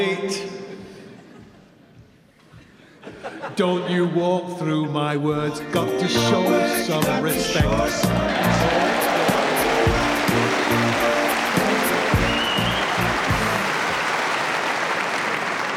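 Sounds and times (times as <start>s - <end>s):
speech: 3.4s - 9.0s
clapping: 8.7s - 15.7s.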